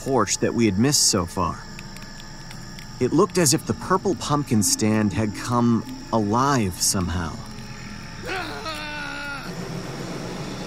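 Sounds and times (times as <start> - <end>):
speech: 0.0 - 1.7, 3.0 - 7.5
person screaming: 8.2 - 9.6.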